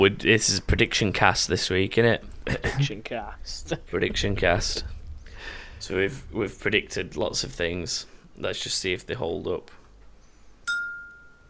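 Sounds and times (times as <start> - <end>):
speech: 0.0 - 9.8
glass struck ringing: 10.6 - 11.4.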